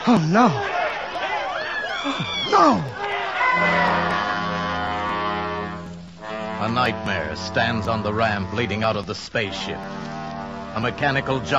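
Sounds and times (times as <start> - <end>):
agitated crowd shouting and roaring: 0.0 - 5.8
speech: 0.1 - 0.8, 2.0 - 3.0, 3.6 - 4.2, 6.6 - 10.1, 10.8 - 11.5.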